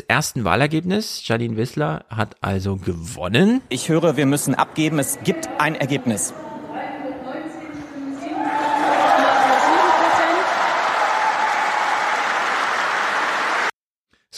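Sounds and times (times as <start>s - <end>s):
speech: 0.1s - 6.5s
crowd cheering after election result: 7.7s - 13.8s
applause after election result: 8.4s - 13.8s.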